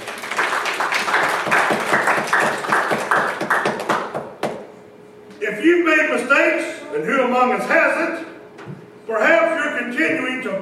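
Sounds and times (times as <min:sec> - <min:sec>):
audience applause: 0:00.0 - 0:04.4
speech: 0:06.0 - 0:08.3, 0:09.1 - 0:10.5.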